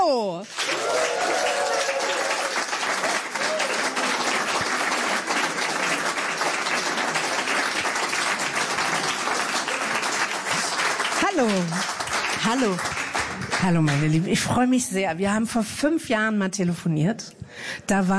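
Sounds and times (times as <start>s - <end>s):
thunderous audience applause: 0.5s - 14.3s
speech: 12.6s - 13.0s, 13.6s - 18.1s.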